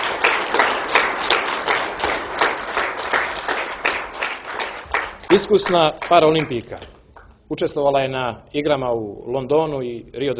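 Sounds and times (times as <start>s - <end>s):
audience clapping for a table tennis player at a sports awards ceremony: 0.0s - 7.4s
speech: 5.4s - 10.3s.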